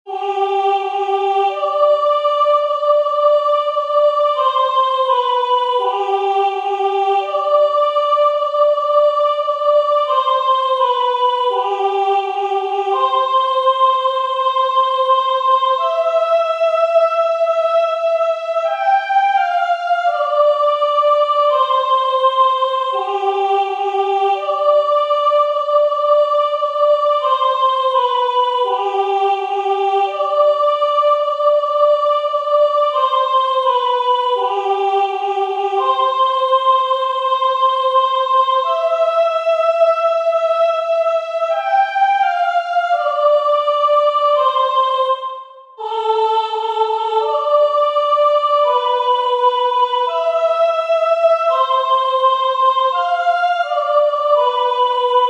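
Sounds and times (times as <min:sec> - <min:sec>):
choir sopranos singing: 0:00.0 - 0:55.2.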